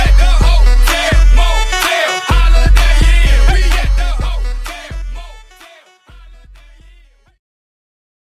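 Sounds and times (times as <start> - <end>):
epic intro music: 0.0 - 6.6.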